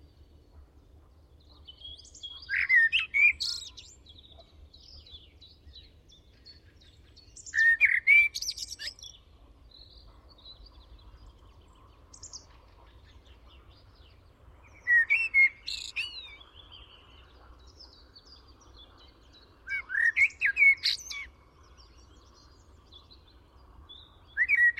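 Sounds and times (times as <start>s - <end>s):
common blackbird singing: 1.3s - 24.7s.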